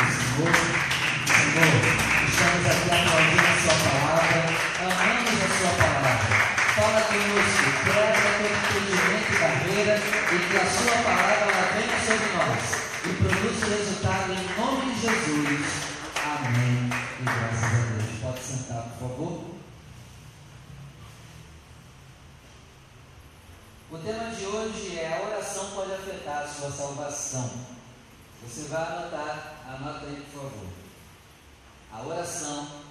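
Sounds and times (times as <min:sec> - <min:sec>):
audience applause: 0:00.0 - 0:18.2
speech: 0:00.4 - 0:00.7, 0:23.9 - 0:27.8, 0:28.4 - 0:30.8, 0:31.9 - 0:32.8.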